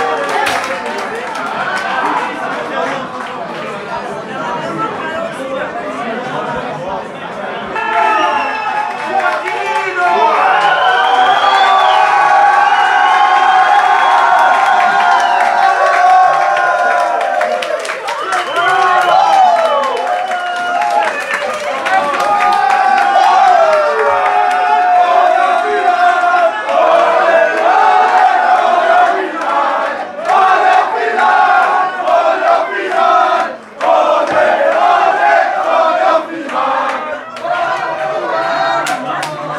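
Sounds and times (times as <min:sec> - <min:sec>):
scattered clapping: 0:00.0 - 0:03.8, 0:08.8 - 0:25.2, 0:25.9 - 0:38.2, 0:38.8 - 0:39.5
large crowd of football supporters cheering at final whistle: 0:00.0 - 0:05.6, 0:07.0 - 0:39.5
whistles: 0:08.1 - 0:09.0, 0:10.4 - 0:15.6, 0:18.1 - 0:21.1.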